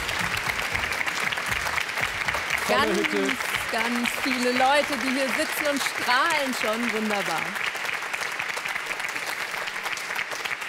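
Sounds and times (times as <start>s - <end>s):
studio audience clapping: 0.0s - 10.6s
speech: 2.7s - 7.7s.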